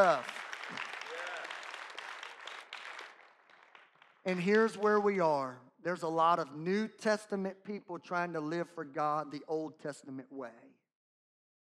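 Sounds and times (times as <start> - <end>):
speech: 0.0 - 0.9, 4.2 - 10.8
audience clapping hands: 0.0 - 5.6.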